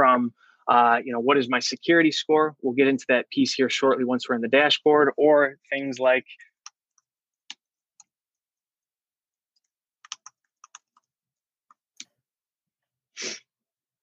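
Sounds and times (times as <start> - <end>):
speech: 0.2 - 6.5
typing on a computer keyboard: 10.0 - 11.1.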